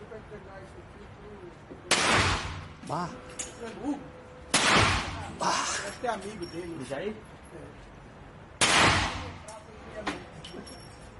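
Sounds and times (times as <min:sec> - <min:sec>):
.50 pistol gunshot in a video game: 0:01.9 - 0:02.7, 0:04.5 - 0:05.2, 0:08.6 - 0:09.4
speech: 0:02.9 - 0:04.2, 0:05.4 - 0:07.9.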